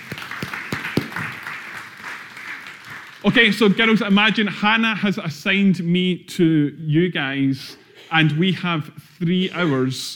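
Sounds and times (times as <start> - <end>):
round of applause: 0.0 - 3.8
speech: 3.2 - 10.1.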